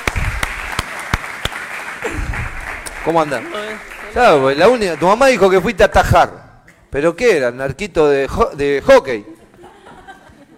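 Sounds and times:
applause: 0:00.0 - 0:05.6
speech: 0:02.0 - 0:02.4, 0:03.0 - 0:09.3
laughter: 0:09.3 - 0:10.5.

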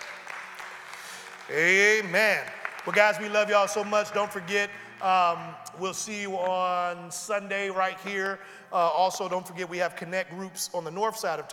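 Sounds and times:
audience clapping: 0:00.0 - 0:05.4
speech: 0:01.5 - 0:11.5.

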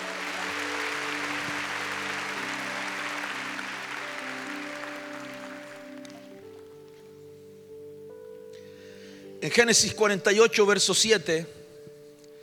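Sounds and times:
audience clapping: 0:00.0 - 0:06.8
sustained organ-like chords: 0:00.0 - 0:09.7
speech: 0:09.4 - 0:11.6.

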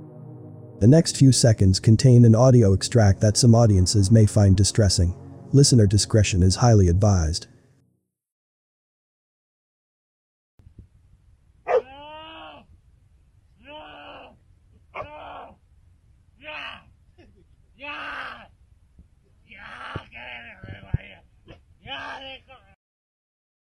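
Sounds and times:
speech: 0:00.8 - 0:07.6
man screaming during dog attack: 0:11.7 - 0:12.7, 0:13.6 - 0:14.4, 0:15.0 - 0:15.6, 0:16.4 - 0:16.9, 0:17.8 - 0:18.5, 0:19.5 - 0:20.7, 0:21.8 - 0:22.5.

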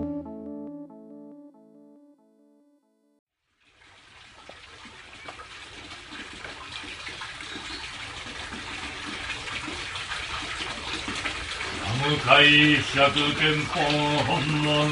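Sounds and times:
cold water poured in ritual cold-water ablution: 0:03.5 - 0:14.9
speech: 0:12.9 - 0:14.9.

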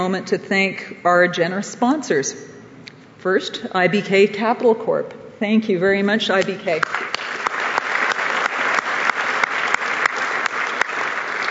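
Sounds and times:
speech: 0:00.0 - 0:02.5, 0:03.2 - 0:07.5
audience applause: 0:07.0 - 0:11.4.

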